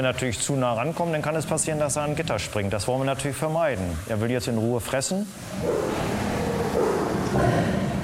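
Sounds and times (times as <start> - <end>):
speech: 0.0 - 7.8
tiger roaring and snarling while defending its prey: 5.4 - 8.0.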